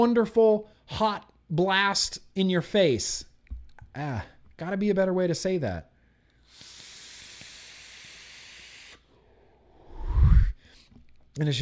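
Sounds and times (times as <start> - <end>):
speech: 0.0 - 3.3, 4.0 - 5.9, 11.4 - 11.5
long drag on a vape: 6.4 - 9.1.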